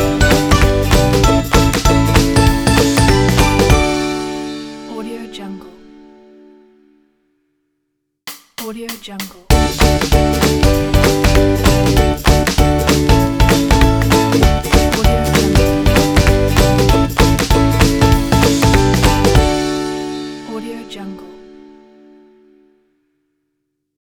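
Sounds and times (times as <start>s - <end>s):
happy funny upbeat logo jingle: 0.0s - 4.9s, 9.5s - 20.6s.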